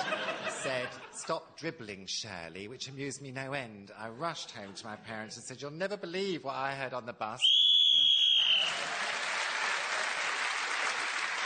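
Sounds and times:
laughter: 0:00.0 - 0:01.3
speech: 0:00.6 - 0:07.6
referee-style game whistle blast: 0:07.4 - 0:08.8
audience applause: 0:08.0 - 0:11.4.

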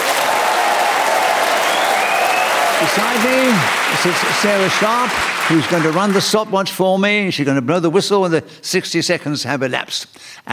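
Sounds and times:
studio audience applause at a panel game show: 0:00.0 - 0:06.5
speech: 0:02.8 - 0:10.5.

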